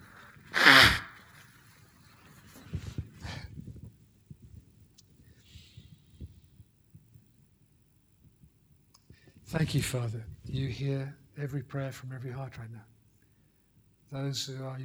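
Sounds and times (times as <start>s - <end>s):
nose blowing: 0.0s - 1.4s
speech: 9.5s - 12.9s, 14.1s - 14.8s.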